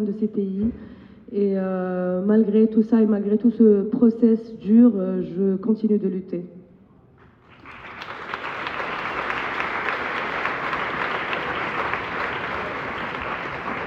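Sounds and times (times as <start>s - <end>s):
speech: 0.0s - 6.6s
audience applause: 7.4s - 13.8s.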